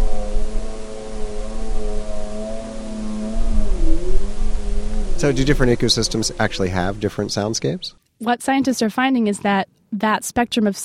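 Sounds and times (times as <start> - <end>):
snowmobile engine droning: 0.0 - 7.9
speech: 5.2 - 10.8.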